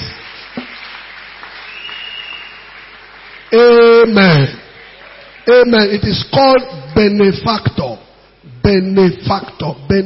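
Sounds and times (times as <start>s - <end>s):
audience clapping hands: 0.0s - 6.0s
speech: 3.5s - 4.6s, 5.5s - 7.9s, 8.6s - 10.0s.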